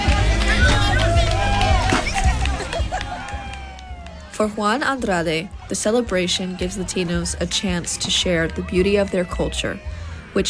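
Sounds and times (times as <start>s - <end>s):
scattered hand claps at a piñata party: 0.0s - 4.3s
laughter: 0.0s - 9.8s
crowd of adults and children singing and cheering at a piñata party: 0.0s - 10.4s
excited voices: 0.0s - 10.4s
speech: 4.4s - 10.4s.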